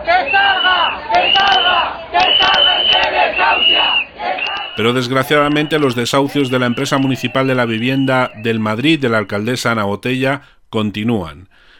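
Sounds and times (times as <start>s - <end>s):
protest crowd shouting in anger: 0.0s - 9.0s
speech: 0.0s - 11.6s.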